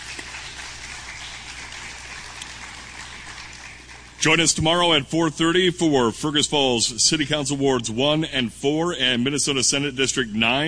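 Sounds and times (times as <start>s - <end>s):
applause: 0.0s - 5.0s
speech: 4.2s - 10.6s.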